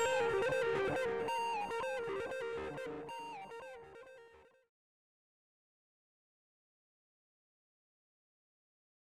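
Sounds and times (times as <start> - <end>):
instrumental music: 0.0 - 4.5.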